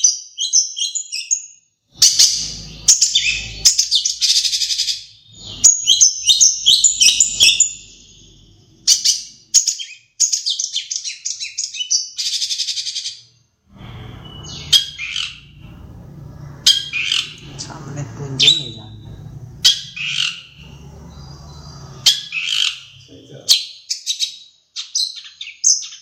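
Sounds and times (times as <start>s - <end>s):
long-tailed shrike singing: 2.0s - 9.6s, 13.7s - 23.6s.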